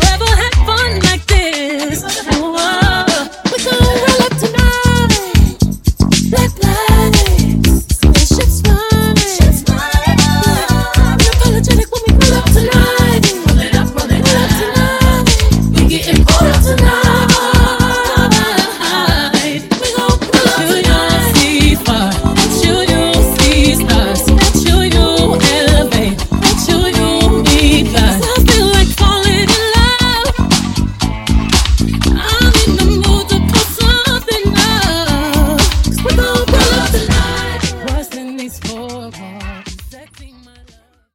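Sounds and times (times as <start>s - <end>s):
funk music mashup blend: 0.0s - 41.1s.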